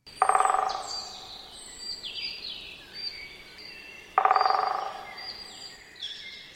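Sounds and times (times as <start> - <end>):
songbirds chirping: 0.0 - 6.5
great spotted woodpecker drumming on wood: 0.1 - 2.4, 4.0 - 5.8.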